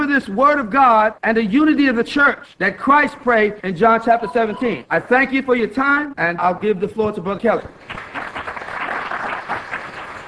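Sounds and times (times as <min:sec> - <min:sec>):
speech: 0:00.2 - 0:08.5
audience at a church gathering clapping: 0:07.7 - 0:10.2.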